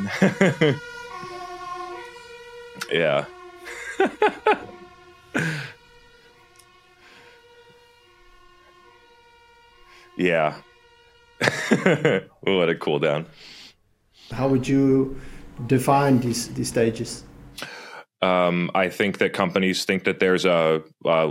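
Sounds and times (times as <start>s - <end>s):
people laughing: 0.0s - 1.3s, 3.6s - 5.8s, 11.4s - 12.4s
fire alarm shrill electronic tone: 0.0s - 12.4s
speech: 0.1s - 0.9s, 2.8s - 3.4s, 4.0s - 4.8s, 5.4s - 5.7s, 10.2s - 10.7s, 11.4s - 13.6s, 14.3s - 21.2s.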